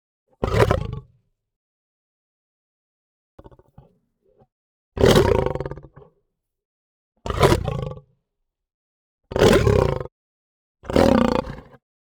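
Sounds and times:
lion snarling: 5.0 - 6.1, 7.3 - 8.0, 9.3 - 10.1, 10.8 - 11.7.

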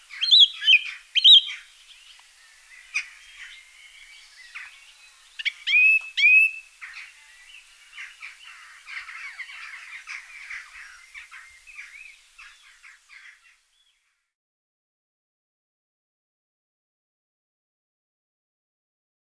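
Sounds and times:
song thrush singing: 0.0 - 14.2.

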